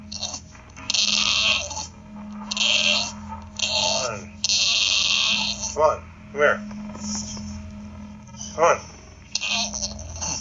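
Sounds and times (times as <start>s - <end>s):
bulldog making a weird noise: 0.1s - 5.8s, 9.3s - 10.3s
speech: 5.8s - 7.2s, 8.6s - 8.9s.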